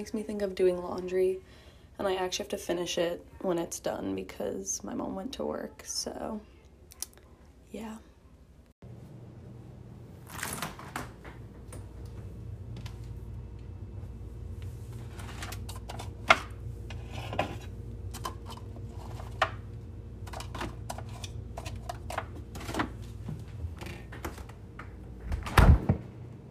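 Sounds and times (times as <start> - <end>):
speech: 0.0 - 6.5, 7.7 - 8.1
steady low hum: 8.0 - 10.3, 11.0 - 26.5
fridge door opening: 10.2 - 12.3, 22.5 - 26.3
fridge door thudding shut: 25.3 - 26.1.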